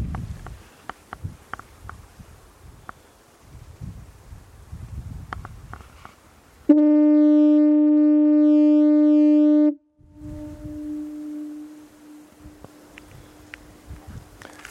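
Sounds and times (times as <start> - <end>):
lighthouse foghorn blowing: 6.7 - 13.7.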